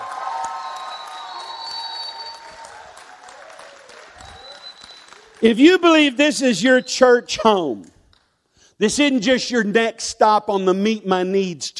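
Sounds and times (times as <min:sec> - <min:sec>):
audience applause for pastors: 0:00.0 - 0:06.1
speech: 0:05.4 - 0:08.0, 0:08.8 - 0:11.7.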